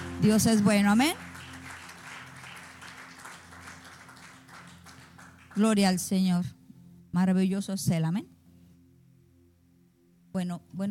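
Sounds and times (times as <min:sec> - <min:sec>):
church audience applauding: 0:00.0 - 0:05.7
speech: 0:00.2 - 0:01.3, 0:05.6 - 0:08.3, 0:10.3 - 0:10.9.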